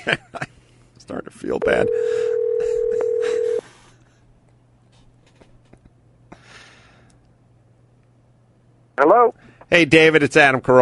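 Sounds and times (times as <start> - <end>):
speech: 0.0 - 0.4, 1.2 - 2.3, 9.0 - 10.8
telephone dial tone as a call is dialed: 1.8 - 3.6.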